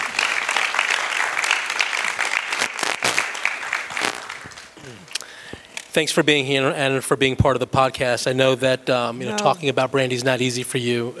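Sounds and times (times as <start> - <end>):
audience applause: 0.0 - 4.7
speech: 4.8 - 5.2, 6.0 - 11.1.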